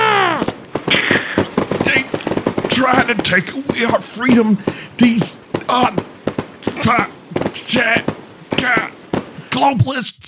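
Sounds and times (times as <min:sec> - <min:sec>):
firecracker-like fireworks banging: 0:00.0 - 0:10.2
speech: 0:02.8 - 0:06.1, 0:06.8 - 0:09.0, 0:09.6 - 0:10.2.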